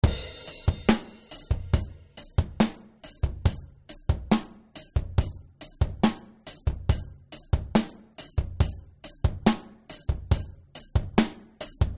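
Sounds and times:
Elysia Karacter extreme drums: 0:00.0 - 0:11.9.

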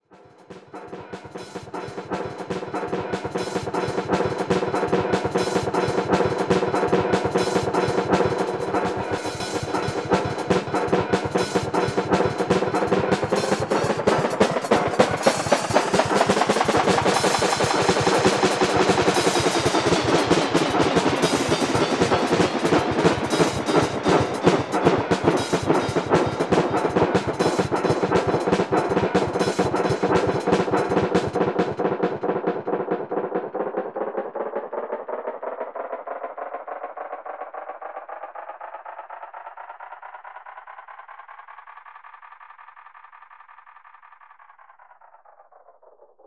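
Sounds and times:
Roland RE-201 space delay echo: 0:00.3 - 0:40.4.

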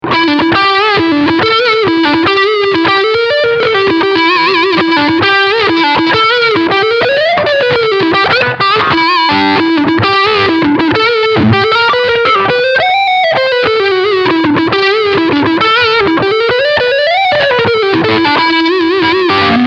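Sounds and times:
crunchy lead line: 0:00.4 - 0:19.6.

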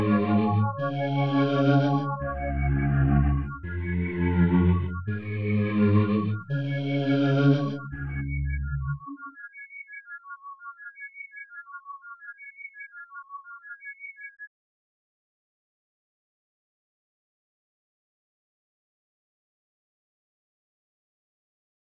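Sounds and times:
Virtual ANS synthesized voice: 0:00.0 - 0:09.2.

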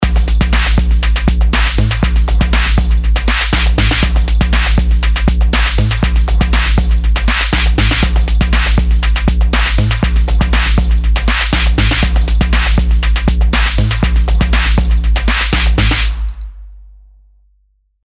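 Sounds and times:
creepy hip hop: 0:00.0 - 0:16.5.

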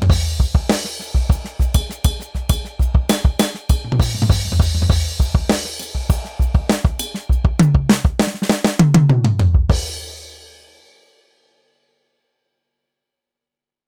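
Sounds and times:
rock drum kit recorded direct: 0:00.0 - 0:10.6.

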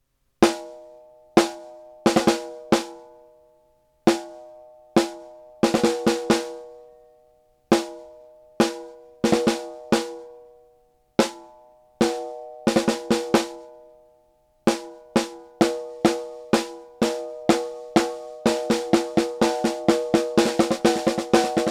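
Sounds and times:
Fredenstein F200 snare drum with compressor: 0:01.4 - 0:02.9, 0:05.0 - 0:06.6, 0:08.6 - 0:10.3, 0:12.0 - 0:13.6, 0:14.7 - 0:21.6.

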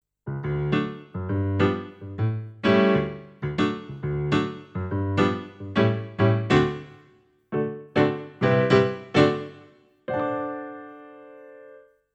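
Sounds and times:
piano: 0:00.2 - 0:12.1.

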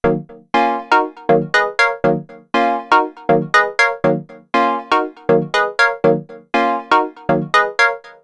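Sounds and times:
Korg minilogue xd synthesizer: 0:00.0 - 0:08.2.

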